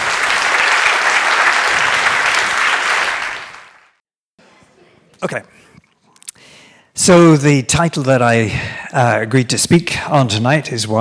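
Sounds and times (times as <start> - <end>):
lecture audience applause welcoming a professor: 0.0 - 4.0
speech: 5.2 - 5.7, 7.0 - 10.9.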